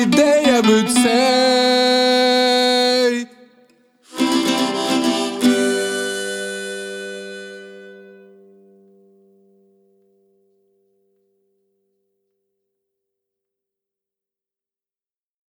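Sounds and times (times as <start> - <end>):
acoustic music: 0.0 - 10.3.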